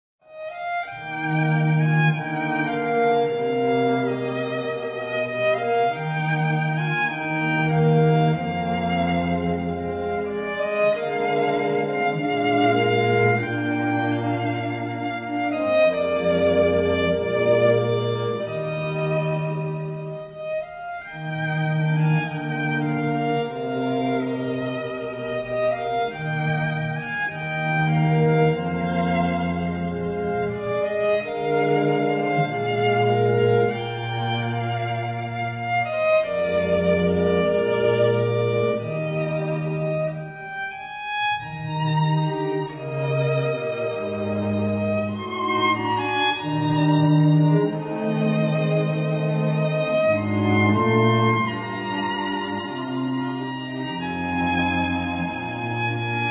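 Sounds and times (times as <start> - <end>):
string quartet: 0.2 - 56.2.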